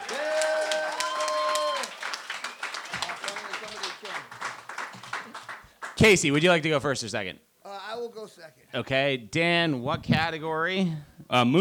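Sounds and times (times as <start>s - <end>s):
audience applause welcoming a quiz contestant: 0.0s - 6.3s
speech: 6.0s - 7.5s, 8.1s - 11.6s.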